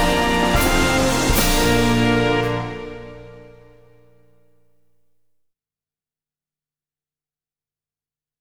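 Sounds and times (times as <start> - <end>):
major and minor chords: 0.0 - 4.5.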